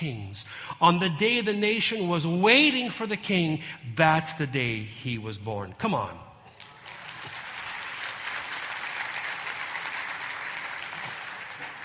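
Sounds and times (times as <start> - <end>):
speech: 0.0 - 6.2
audience applause: 6.6 - 11.8.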